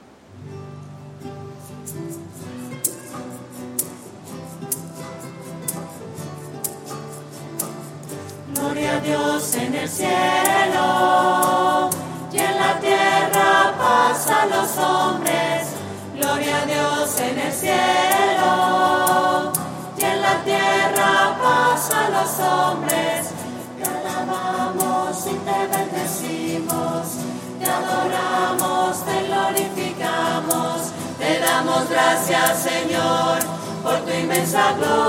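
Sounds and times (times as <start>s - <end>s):
voices singing: 8.5s - 35.0s.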